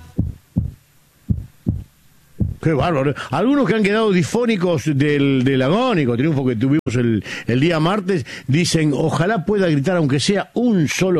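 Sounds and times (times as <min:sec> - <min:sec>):
heartbeat: 0:00.0 - 0:02.7
speech: 0:02.6 - 0:11.1.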